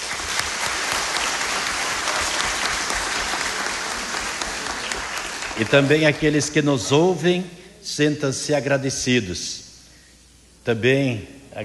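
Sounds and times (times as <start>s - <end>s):
applause: 0.0s - 6.3s
speech: 5.6s - 9.6s, 10.6s - 11.6s.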